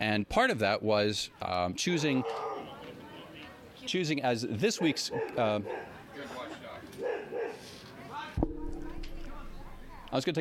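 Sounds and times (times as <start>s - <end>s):
speech: 0.0s - 2.5s, 3.9s - 6.3s, 10.1s - 10.3s
dog barking: 2.1s - 2.8s, 4.8s - 6.1s, 7.0s - 7.7s.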